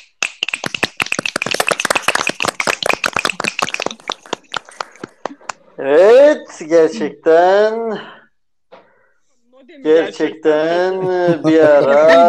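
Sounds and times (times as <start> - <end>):
audience applause: 0.3 - 5.6
laughter: 3.2 - 5.6, 10.0 - 12.2
speech: 5.8 - 8.2, 9.6 - 12.2.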